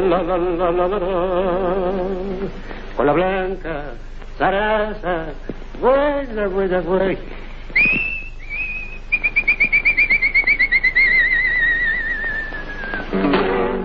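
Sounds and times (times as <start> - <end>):
speech: 0.0 - 8.1
tango singer whistling: 7.7 - 13.2.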